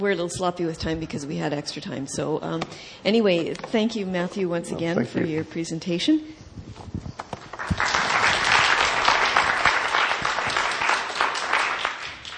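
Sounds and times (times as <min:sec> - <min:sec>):
speech: 0:00.0 - 0:06.8
audience applause: 0:07.5 - 0:12.3.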